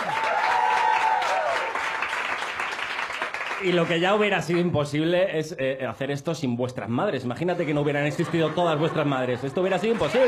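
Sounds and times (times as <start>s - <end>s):
audience applause: 0.0s - 4.7s, 8.2s - 10.2s
speech: 3.6s - 10.2s
laughter: 7.6s - 10.2s.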